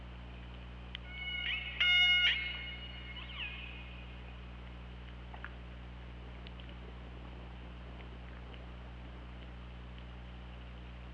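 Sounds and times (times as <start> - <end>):
low steady hum: 0.0 - 11.1
killer whale calls: 1.1 - 4.0.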